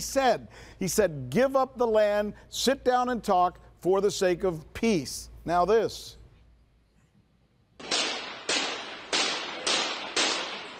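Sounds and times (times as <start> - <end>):
speech: 0.0 - 6.2
gunshots in news footage of a shooting: 7.8 - 10.7.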